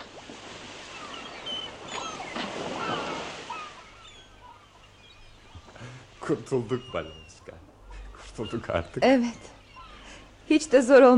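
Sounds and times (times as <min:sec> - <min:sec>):
faint wind: 0:00.0 - 0:11.1
sea waves around a chartered ship off Crimea: 0:00.0 - 0:11.1
thin bird cries: 0:00.9 - 0:05.7, 0:06.5 - 0:10.4
speech: 0:06.3 - 0:07.3, 0:08.4 - 0:09.6, 0:10.5 - 0:11.1.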